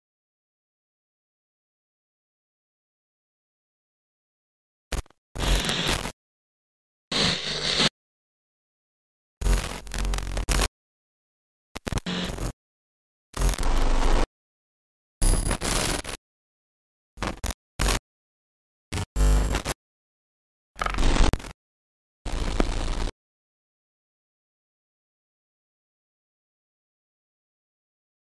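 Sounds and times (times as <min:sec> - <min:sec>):
glitch noise: 0:04.9 - 0:06.2, 0:09.4 - 0:10.7, 0:11.8 - 0:12.6, 0:13.4 - 0:14.3, 0:15.2 - 0:16.2, 0:17.2 - 0:18.0, 0:18.9 - 0:19.8, 0:20.8 - 0:21.6, 0:22.3 - 0:23.1.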